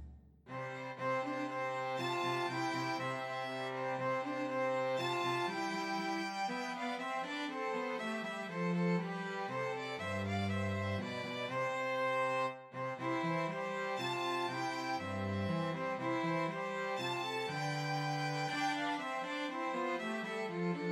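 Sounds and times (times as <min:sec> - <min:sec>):
Christmas trio for two violins and cello: 0:00.5 - 0:20.9.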